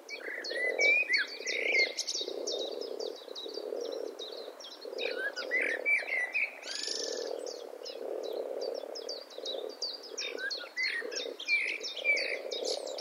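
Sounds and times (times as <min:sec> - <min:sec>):
Eurasian blackbird Turdus merula chink calls and whistles: 0:00.1 - 0:12.9.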